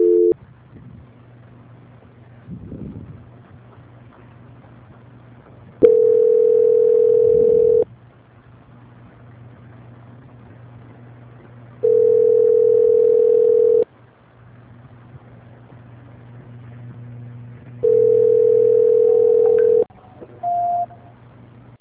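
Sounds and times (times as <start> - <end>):
telephone line tones while a call is transferred: 0.0 - 0.4, 5.8 - 7.8, 11.8 - 13.8, 17.8 - 21.1
short higher telephone beep: 20.0 - 21.1.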